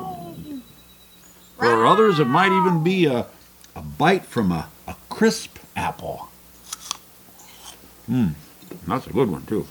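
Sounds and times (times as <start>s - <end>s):
panther scream: 1.6s - 3.2s
speech: 1.9s - 6.3s, 8.1s - 9.6s.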